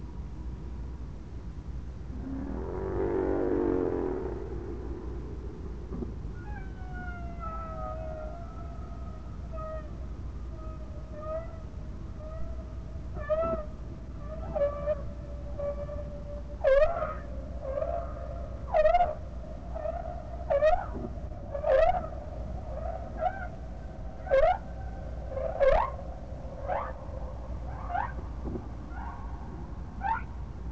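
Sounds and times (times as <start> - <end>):
low background rumble: 0.0 - 30.7
broad noisy rushing: 2.1 - 6.9
whale moans: 2.1 - 12.6, 13.2 - 26.0.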